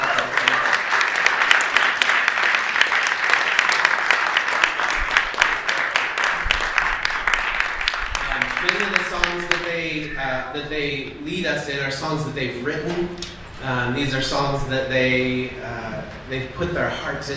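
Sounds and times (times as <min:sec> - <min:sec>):
audience applauding: 0:00.0 - 0:09.9
speech: 0:10.8 - 0:17.3.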